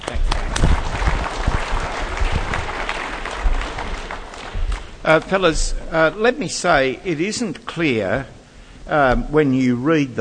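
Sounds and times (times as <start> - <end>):
audience applause welcoming a speaker to a Christian talk: 0.0 - 6.4
speech: 5.0 - 10.1.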